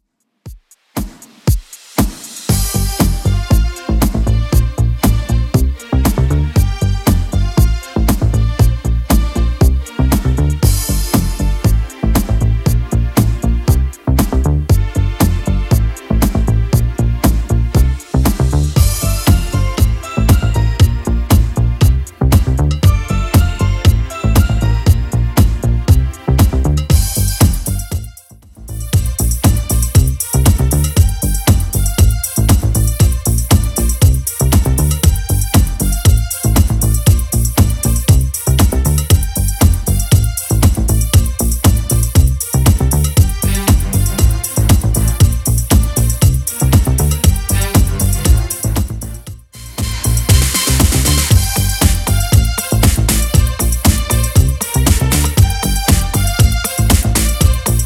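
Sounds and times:
80s style music at 118 bpm: 0:00.5 - 0:57.8.

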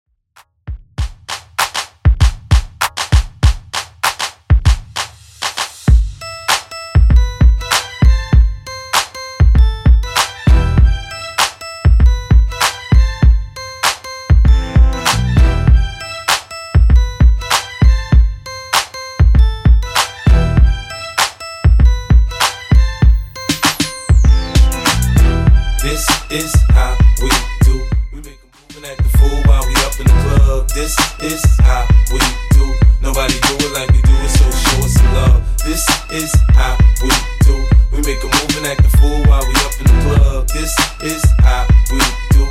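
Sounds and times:
hip hop beat: 0:00.5 - 0:42.5.

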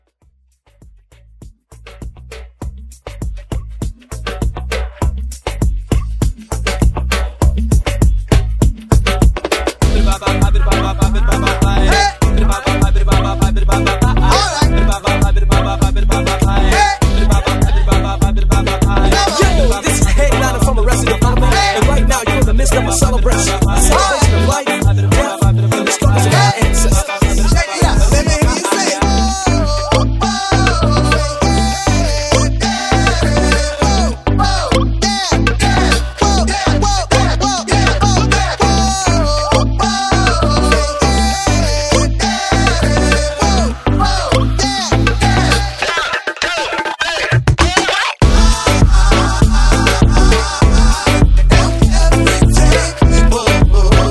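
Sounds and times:
moombahton vocal: 0:03.0 - 0:54.0
laughter: 0:10.0 - 0:15.1, 0:17.2 - 0:18.2.

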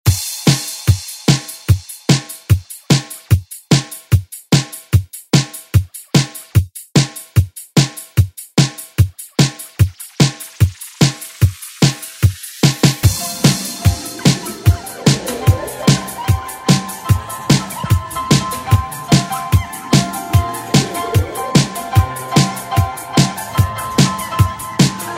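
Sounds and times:
80s drum beat: 0:00.0 - 0:25.1.

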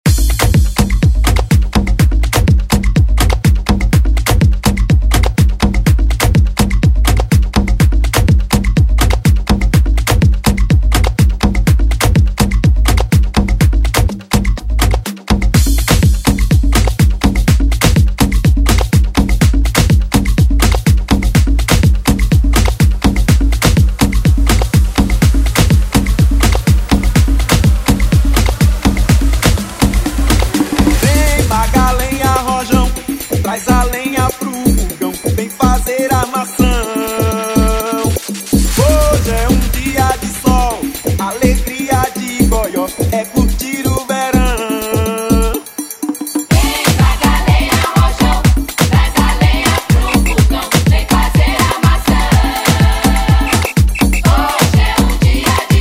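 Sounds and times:
afro house music: 0:00.0 - 0:55.7.

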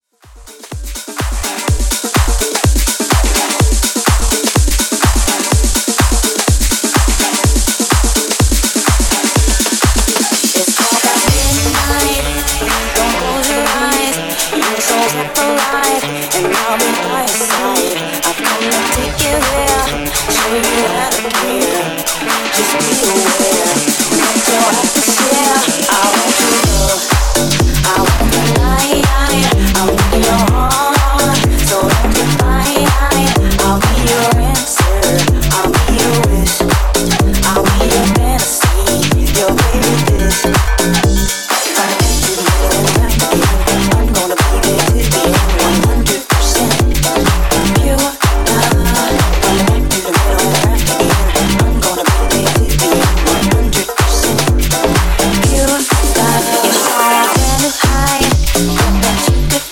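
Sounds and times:
house music: 0:00.0 - 0:59.7.

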